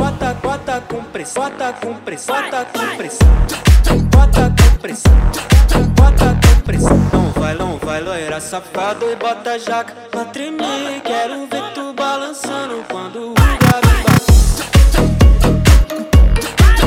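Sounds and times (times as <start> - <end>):
funk music: 2.8 - 8.4, 13.4 - 16.8.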